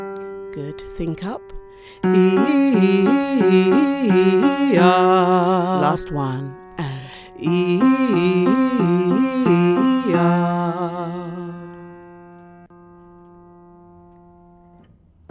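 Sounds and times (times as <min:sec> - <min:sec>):
house music choir singing fifths warm-up: 0:00.6 - 0:12.1.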